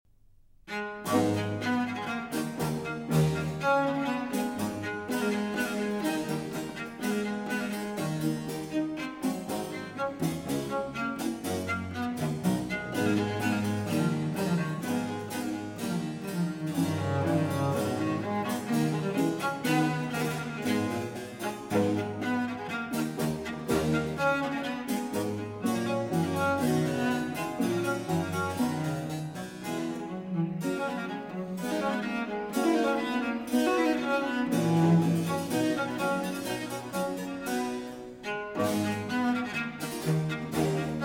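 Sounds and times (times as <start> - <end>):
cello and continuo sonata in A minor: 0.7 - 41.0.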